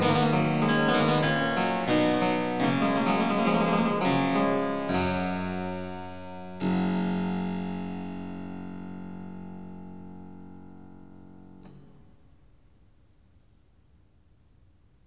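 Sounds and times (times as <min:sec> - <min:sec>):
harpsichord pieces: 0:00.0 - 0:11.5.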